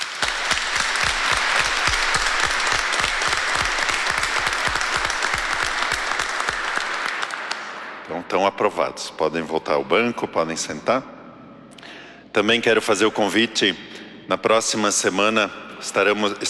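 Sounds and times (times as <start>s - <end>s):
audience applause: 0.0s - 8.0s
speech: 8.3s - 11.2s, 12.4s - 16.4s.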